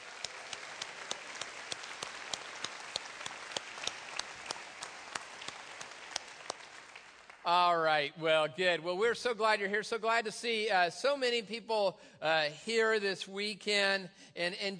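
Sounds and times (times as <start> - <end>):
audience applauding the dads at a Father's Day gathering: 0.0 - 8.1
speech: 7.4 - 14.7.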